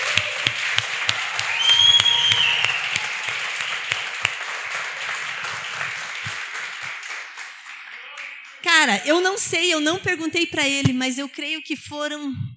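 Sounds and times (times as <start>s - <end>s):
audience applause: 0.0s - 8.6s
high whistle: 1.4s - 4.1s
speech: 8.9s - 12.5s.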